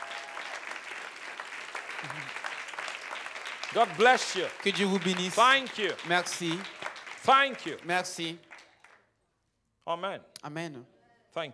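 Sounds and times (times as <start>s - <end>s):
brief cheer: 0.0s - 0.8s
large crowd clapping and applauding: 0.0s - 9.0s
speech: 3.7s - 8.5s, 9.9s - 11.5s.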